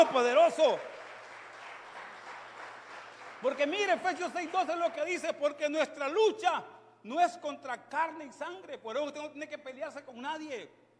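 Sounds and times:
speech: 0:00.0 - 0:01.0, 0:03.4 - 0:10.8
audience applause: 0:00.0 - 0:05.0.

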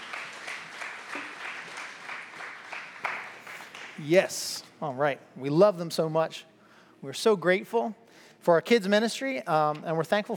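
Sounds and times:
audience applause for volunteers: 0:00.0 - 0:04.0
speech: 0:04.0 - 0:10.3.

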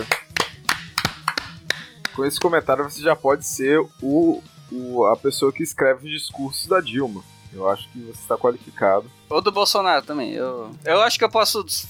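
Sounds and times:
hand clapping: 0:00.0 - 0:03.0
speech: 0:02.2 - 0:11.8.

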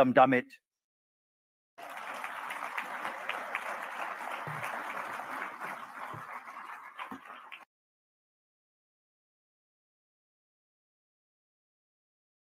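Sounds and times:
crowd applause: 0:01.8 - 0:07.7.

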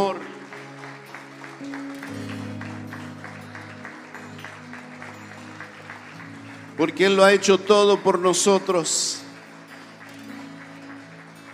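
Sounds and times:
crowd applause: 0:00.0 - 0:11.5
sustained low keyboard or organ chords: 0:00.0 - 0:11.5
speech: 0:06.8 - 0:09.2.

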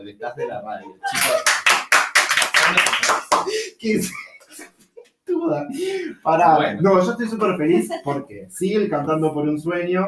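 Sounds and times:
speech: 0:00.1 - 0:01.6, 0:02.7 - 0:04.7, 0:05.4 - 0:10.0
laughter: 0:00.2 - 0:01.6
hand claps in studio: 0:01.1 - 0:03.6.

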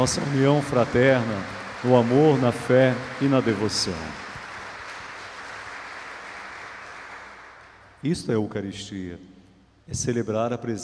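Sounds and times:
speech: 0:00.0 - 0:04.2, 0:08.0 - 0:09.3, 0:09.9 - 0:10.8
audience applause: 0:00.0 - 0:07.8.

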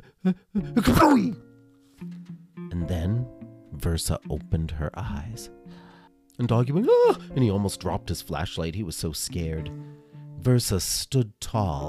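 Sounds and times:
narrator imitating a sneeze: 0:00.0 - 0:01.4, 0:06.8 - 0:07.2
speech: 0:00.2 - 0:02.2, 0:02.8 - 0:05.6, 0:06.4 - 0:11.8.

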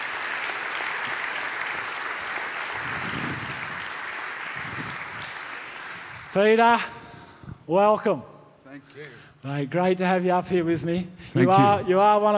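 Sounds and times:
audience applause at a faith gathering: 0:00.0 - 0:06.7
speech: 0:06.3 - 0:07.0, 0:07.7 - 0:12.3.

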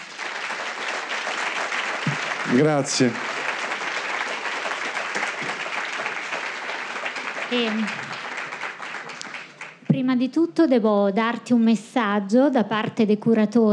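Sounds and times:
audience applause: 0:00.0 - 0:09.9
speech: 0:02.5 - 0:03.3, 0:07.5 - 0:08.1, 0:10.2 - 0:13.7.

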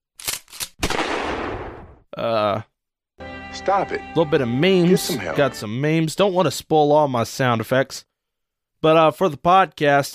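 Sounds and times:
shotgun sound effect: 0:00.8 - 0:02.0
speech: 0:03.6 - 0:08.1, 0:08.8 - 0:10.1.

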